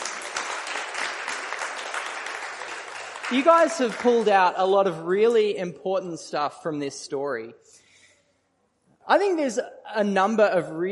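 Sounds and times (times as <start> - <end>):
audience applause: 0.0 - 4.5
speech: 3.3 - 7.8, 9.1 - 10.9.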